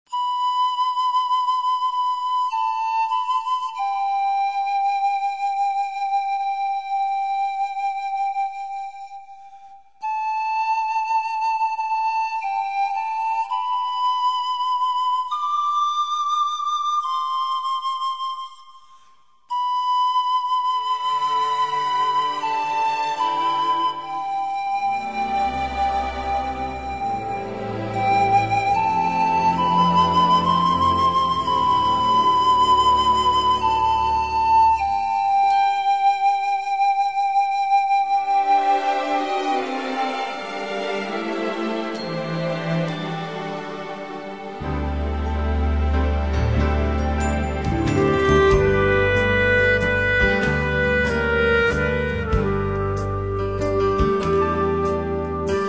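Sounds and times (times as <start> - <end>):
orchestra panpipes playing a hymn medley: 0.1 - 55.6.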